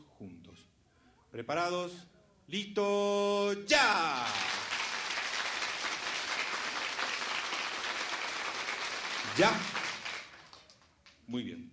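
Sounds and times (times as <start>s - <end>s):
speech: 1.4s - 4.6s, 9.4s - 9.8s, 11.3s - 11.7s
audience clapping in unison: 4.1s - 11.2s.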